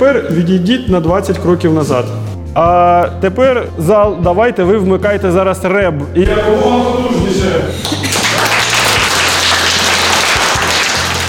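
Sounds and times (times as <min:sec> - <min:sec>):
speech: 0:00.0 - 0:07.9
room full of students applauding loudly: 0:07.8 - 0:11.2.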